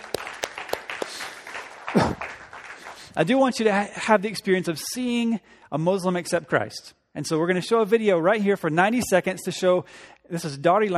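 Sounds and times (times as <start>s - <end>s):
clapping: 0.0s - 3.2s
speech: 3.2s - 10.9s.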